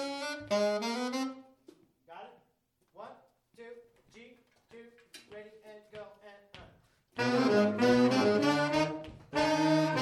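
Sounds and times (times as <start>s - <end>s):
saxophones playing at G: 0.0s - 1.6s, 7.2s - 10.0s.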